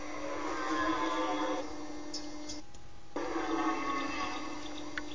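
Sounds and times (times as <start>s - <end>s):
red deer bellowing during the rut: 0.0s - 1.9s, 3.2s - 5.0s.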